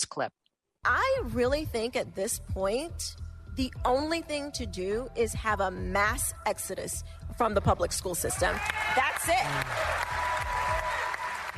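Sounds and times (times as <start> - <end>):
speech: 0.2 - 10.2
crowd applauding: 8.3 - 11.5.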